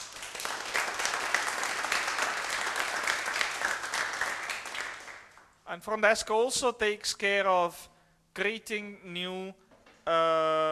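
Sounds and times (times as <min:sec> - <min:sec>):
audience applause: 0:00.0 - 0:05.4
speech: 0:05.7 - 0:10.7.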